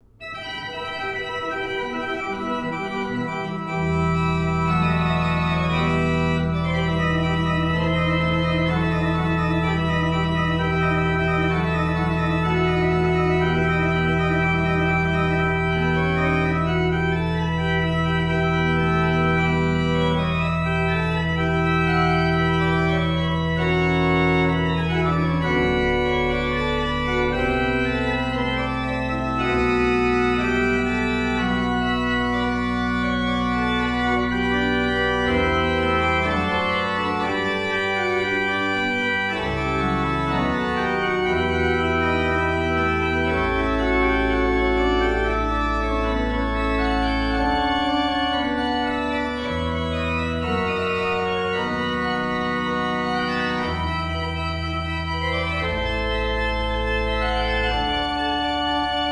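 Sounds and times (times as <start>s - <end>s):
prelude in D: 0.0s - 59.1s.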